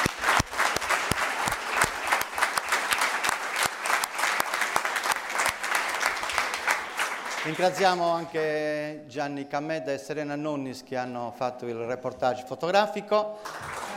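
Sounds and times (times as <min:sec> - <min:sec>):
audience applause: 0:00.0 - 0:08.4, 0:13.4 - 0:13.9
speech: 0:07.5 - 0:13.6.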